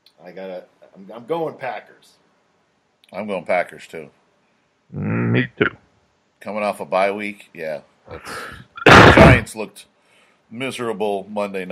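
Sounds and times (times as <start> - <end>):
speech: 0.2 - 2.2, 3.1 - 4.2, 4.9 - 5.8, 6.4 - 9.9, 10.5 - 11.6
person sneezing: 8.1 - 9.4.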